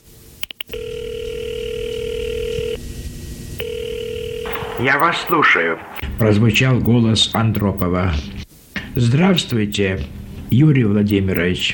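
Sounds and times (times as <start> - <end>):
telephone ringing tone: 0.7 - 2.8, 3.6 - 5.4
speech: 4.8 - 8.4, 9.0 - 11.7.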